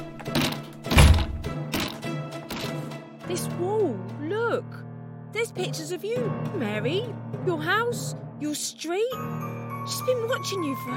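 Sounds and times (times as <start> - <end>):
door being smashed in: 0.2 - 2.0
speech: 3.3 - 10.9.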